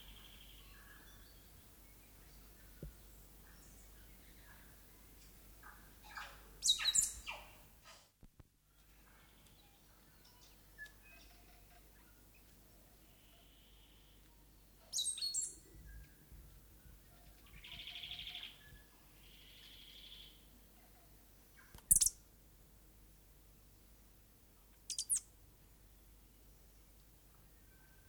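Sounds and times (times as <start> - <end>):
stitchbird song: 0.0 - 7.7, 9.0 - 20.5, 21.5 - 22.2, 24.8 - 25.3.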